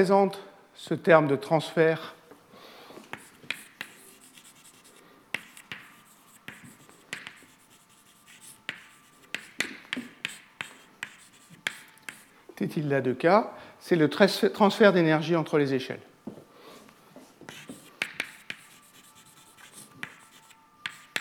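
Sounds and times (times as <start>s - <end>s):
speech: 0.0s - 2.2s, 12.6s - 16.1s
writing during a physics lecture: 3.0s - 12.3s, 17.4s - 21.1s.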